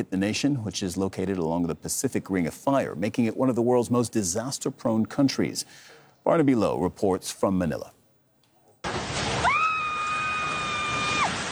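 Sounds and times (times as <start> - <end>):
speech: 0.0 - 8.0
building collapsing in an earthquake: 8.8 - 11.5
high-pitched scream: 9.4 - 11.5.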